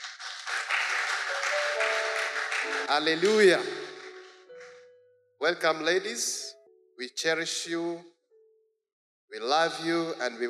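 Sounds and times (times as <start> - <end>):
audience applause: 0.0 - 4.2
speech: 2.8 - 3.8, 5.4 - 8.1, 9.3 - 10.4.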